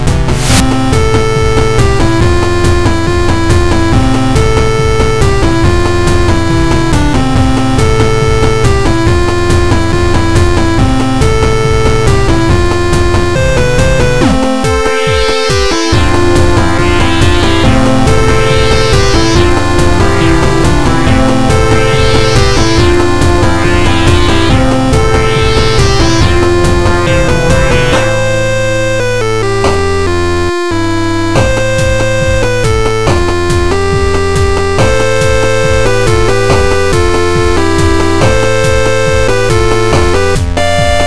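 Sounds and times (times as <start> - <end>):
song: 0.1 - 41.0.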